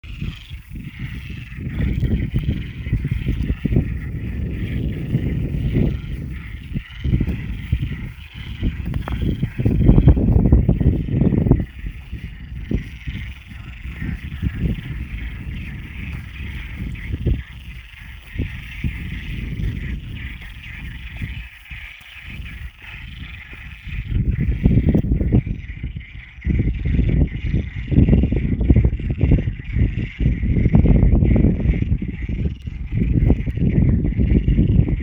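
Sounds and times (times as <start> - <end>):
frogs: 0.0 - 35.0.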